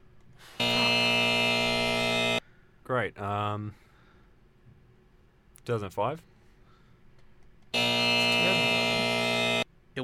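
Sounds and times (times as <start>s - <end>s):
quiz show buzzer: 0.6s - 2.4s, 7.7s - 9.7s
speech: 3.0s - 3.9s, 5.6s - 6.3s.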